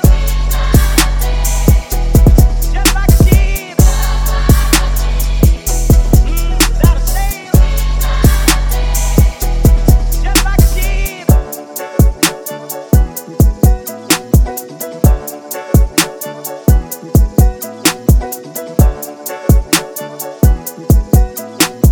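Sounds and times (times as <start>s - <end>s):
128 bpm music loop in E minor: 0.0s - 21.8s.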